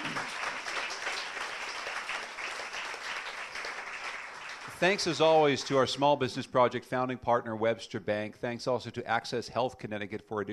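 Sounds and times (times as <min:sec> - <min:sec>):
crowd applauding: 0:00.0 - 0:06.0
speech: 0:04.8 - 0:10.5.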